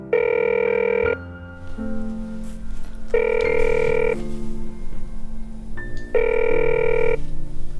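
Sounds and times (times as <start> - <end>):
phone ringing unanswered: 0.1 - 1.2, 3.1 - 4.3, 6.1 - 7.2.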